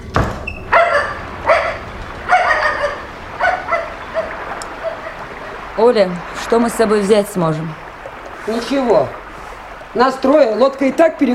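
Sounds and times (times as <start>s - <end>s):
dog barking: 0.7s - 5.3s
speech: 5.8s - 7.8s, 8.4s - 9.2s, 10.0s - 11.3s.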